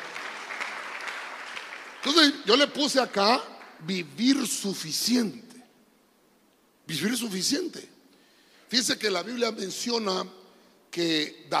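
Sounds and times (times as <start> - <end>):
audience clapping: 0.0 - 2.7, 3.3 - 3.9
speech: 2.0 - 5.5, 6.9 - 8.0, 8.7 - 11.5.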